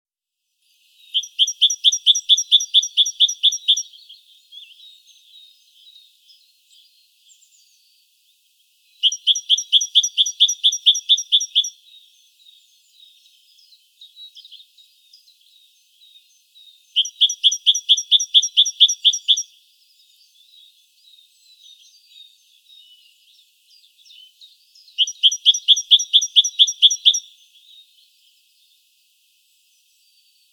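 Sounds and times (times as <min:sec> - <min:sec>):
great tit calling: 0:01.0 - 0:06.0, 0:09.0 - 0:15.3, 0:16.1 - 0:22.4, 0:23.9 - 0:27.9.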